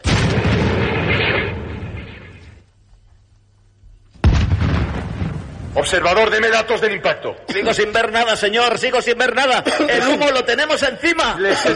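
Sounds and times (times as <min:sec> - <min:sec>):
artillery gun firing during a crew's firing drill: 0:00.0 - 0:02.6, 0:04.2 - 0:05.9
speech: 0:05.8 - 0:11.7
laughter: 0:09.4 - 0:10.5, 0:11.3 - 0:11.7.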